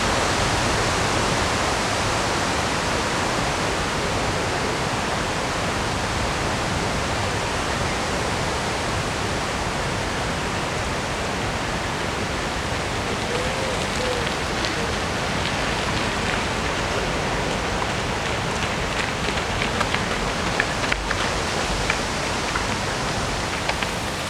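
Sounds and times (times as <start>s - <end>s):
river in Odense, Denmark rushing: 0.0s - 24.2s
faint ticks and splashes: 12.9s - 24.2s.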